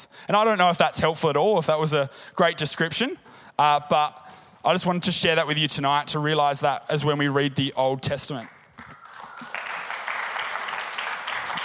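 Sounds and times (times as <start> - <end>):
speech: 0.0 - 9.0
audience applause: 8.3 - 11.6.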